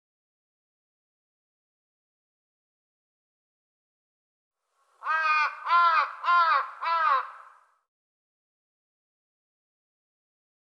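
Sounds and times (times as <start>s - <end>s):
bird cawing: 5.0s - 7.8s.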